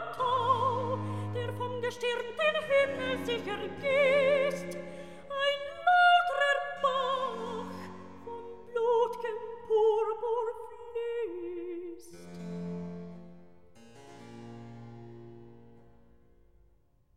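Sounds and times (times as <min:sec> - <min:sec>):
recitative singing: 0:00.0 - 0:12.6.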